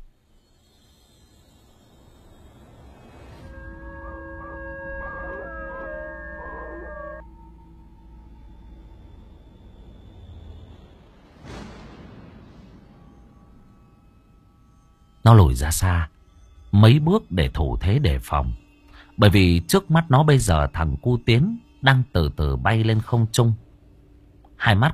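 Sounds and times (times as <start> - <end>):
monster howling like a dog: 3.4 - 7.2
speech: 15.3 - 16.1, 16.7 - 18.6, 19.2 - 23.6, 24.6 - 24.9.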